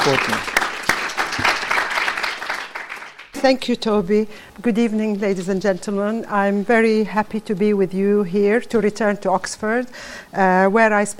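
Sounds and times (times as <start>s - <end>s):
speech: 0.0s - 0.6s, 3.4s - 11.1s
audience applause: 0.0s - 3.4s.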